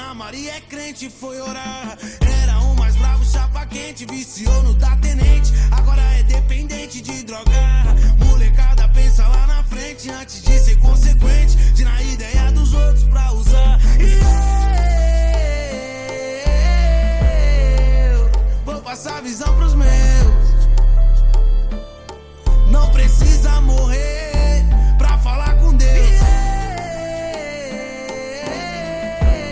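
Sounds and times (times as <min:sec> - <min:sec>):
deep bass: 0:02.2 - 0:03.8, 0:04.5 - 0:06.8, 0:07.5 - 0:09.8, 0:10.5 - 0:15.8, 0:16.5 - 0:18.8, 0:19.5 - 0:21.8, 0:22.5 - 0:27.0, 0:28.9 - 0:29.5.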